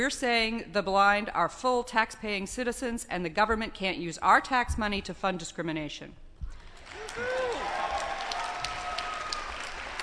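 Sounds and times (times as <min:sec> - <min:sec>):
speech: 0:00.0 - 0:06.2
audience applause: 0:06.8 - 0:10.0.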